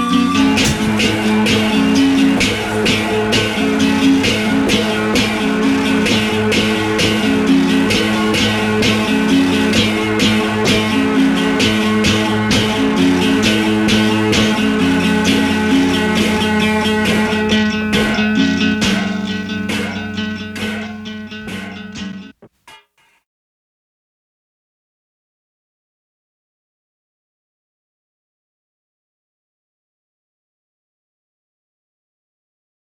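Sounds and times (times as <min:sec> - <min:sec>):
acoustic guitar played with a razor blade: 0:00.4 - 0:19.9.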